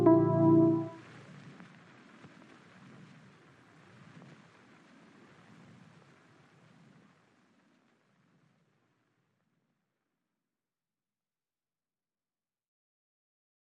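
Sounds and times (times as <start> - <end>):
Rhodes electric piano: 0.0 - 1.0.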